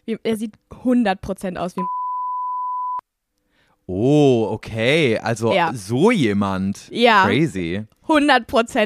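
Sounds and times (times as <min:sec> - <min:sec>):
speech: 0:00.1 - 0:02.0, 0:03.9 - 0:08.8
censor bleep over a spoken name: 0:01.8 - 0:03.0.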